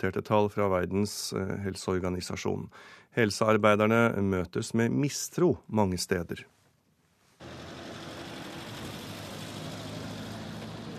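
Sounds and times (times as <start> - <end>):
speech: 0.0 - 6.6
cars driving past: 7.4 - 10.9.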